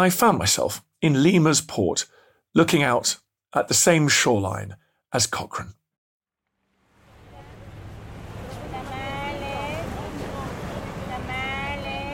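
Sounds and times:
speech: 0.0s - 5.8s
Pacific Ocean waves lapping against a breakwater: 6.8s - 12.1s.

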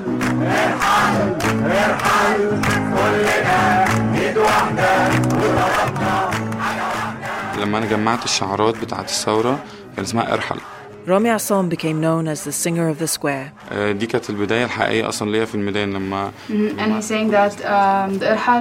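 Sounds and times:
protest crowd chanting in a square: 0.0s - 11.4s
speech: 0.4s - 3.4s, 7.6s - 18.5s.

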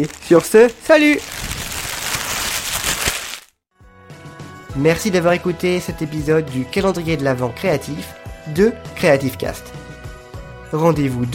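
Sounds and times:
speech: 0.0s - 1.4s, 4.8s - 9.8s, 10.7s - 11.3s
paper rustling: 0.0s - 3.5s.

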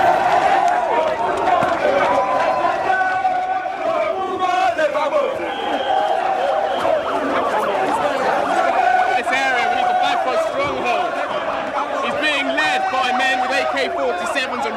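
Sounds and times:
huge crowd of supporters roaring and chanting: 0.0s - 14.7s.

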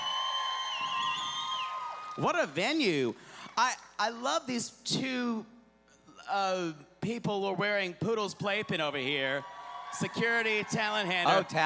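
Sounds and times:
high whistles and whoops: 0.0s - 2.2s
theater audience applauding and cheering: 0.0s - 3.6s, 8.4s - 11.6s
speech: 2.2s - 5.5s, 6.2s - 11.6s.

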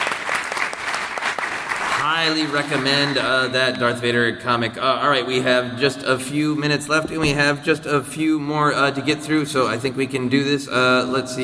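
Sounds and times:
audience clapping: 0.0s - 3.3s
speech: 2.2s - 11.4s.

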